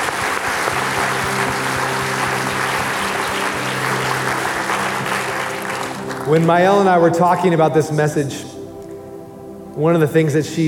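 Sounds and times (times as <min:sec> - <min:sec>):
audience clapping: 0:00.0 - 0:07.1
speech: 0:06.3 - 0:08.5, 0:09.8 - 0:10.6.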